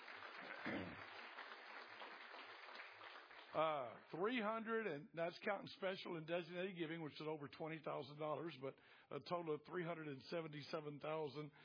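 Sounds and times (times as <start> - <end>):
church congregation clapping: 0.0 - 4.2
speech: 3.6 - 11.6.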